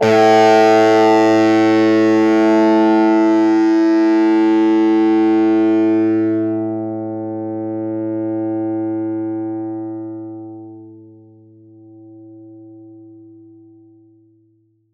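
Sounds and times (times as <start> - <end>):
distorted acoustic and electric plucked string: 0.0 - 11.0.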